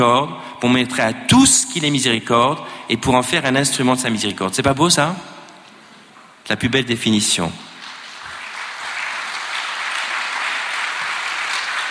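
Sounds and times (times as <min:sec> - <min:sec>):
speech: 0:00.0 - 0:05.4, 0:06.5 - 0:07.7
audience applause: 0:07.8 - 0:11.8.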